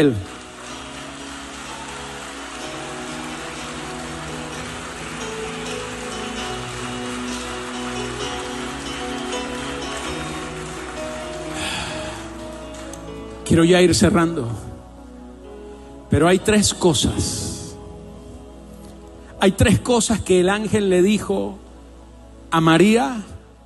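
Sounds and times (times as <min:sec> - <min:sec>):
speech: 0:00.0 - 0:00.3, 0:13.5 - 0:14.7, 0:16.1 - 0:17.6, 0:19.4 - 0:21.6, 0:22.5 - 0:23.3
sustained instrumental music: 0:00.0 - 0:14.0
large crowd applauding loudly: 0:00.0 - 0:14.2.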